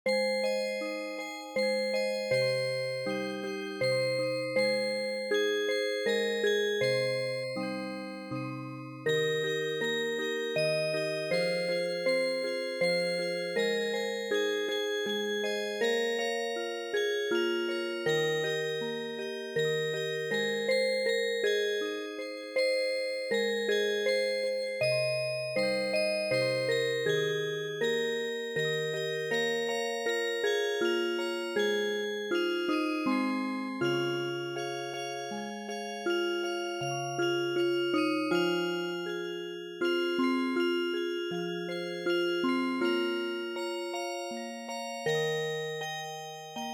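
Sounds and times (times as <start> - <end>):
music box: 0.1 - 46.7.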